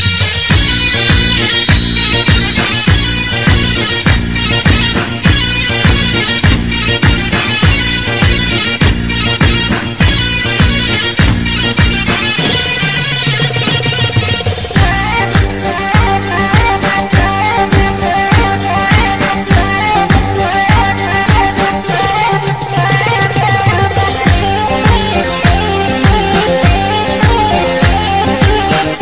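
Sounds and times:
Iraqi debke music: 0.0s - 29.0s.

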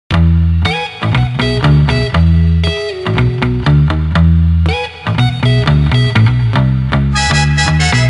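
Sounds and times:
fun music buildup: 0.1s - 8.0s.

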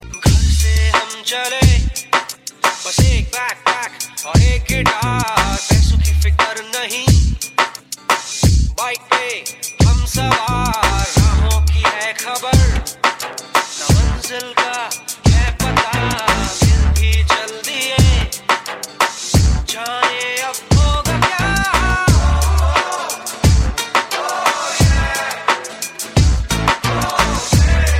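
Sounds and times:
dhol drum mix: 0.2s - 27.9s.

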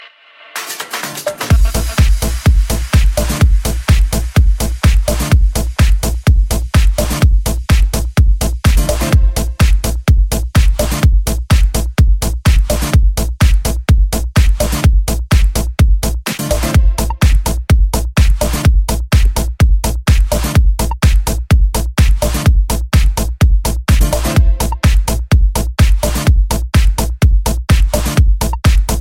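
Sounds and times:
rhythm: 0.5s - 29.0s.

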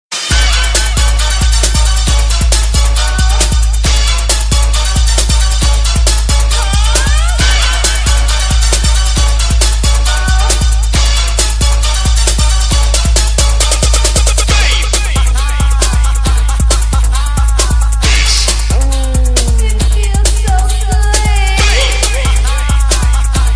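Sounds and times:
hot bass: 0.2s - 23.5s.

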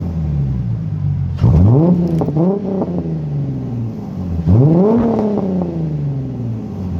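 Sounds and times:
V6 Mustang engine revving: 0.0s - 6.9s.

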